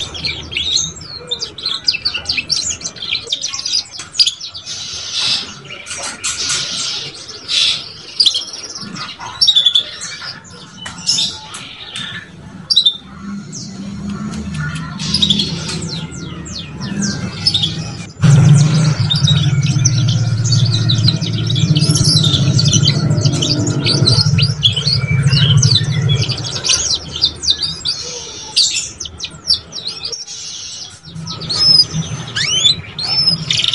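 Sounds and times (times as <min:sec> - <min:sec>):
Belgian canary song: 0:00.0 - 0:33.7
low hum: 0:13.0 - 0:27.8.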